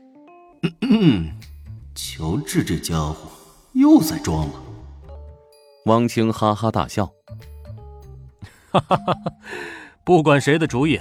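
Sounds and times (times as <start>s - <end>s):
single cough: 0.6s - 1.2s
speech: 0.7s - 1.4s, 2.0s - 4.6s, 5.8s - 7.5s, 8.7s - 10.9s.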